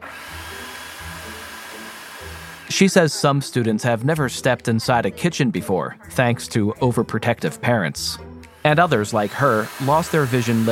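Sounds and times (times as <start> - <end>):
food processor running: 0.0 - 2.9, 8.6 - 10.7
speech: 2.7 - 10.7.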